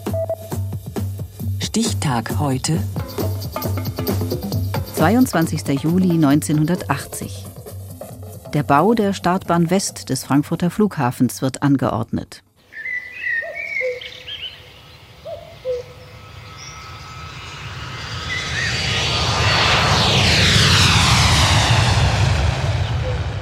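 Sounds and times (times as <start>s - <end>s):
airplane flying low overhead: 1.3s - 8.5s, 12.6s - 23.4s
speech: 1.8s - 3.9s, 5.0s - 7.5s, 8.5s - 12.4s.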